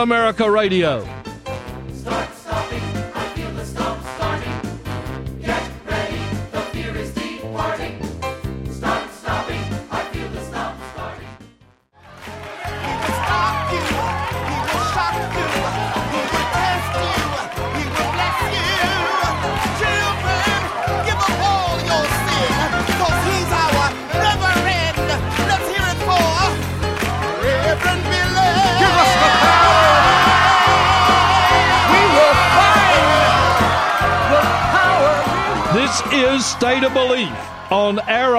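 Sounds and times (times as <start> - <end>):
speech: 0.0 - 1.2, 36.4 - 38.3
steady rhythmic music: 0.0 - 11.4, 12.0 - 38.3
crowd cheering at a celebration: 12.0 - 24.0, 26.9 - 38.3.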